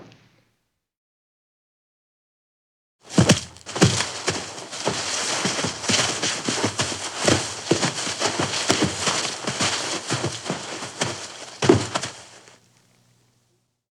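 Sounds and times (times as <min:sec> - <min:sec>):
body falling: 0:03.1 - 0:12.6.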